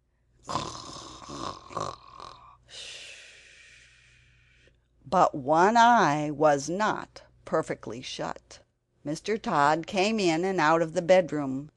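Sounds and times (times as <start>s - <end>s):
peaceful regular snoring: 0.4s - 2.6s
speech: 5.1s - 11.7s.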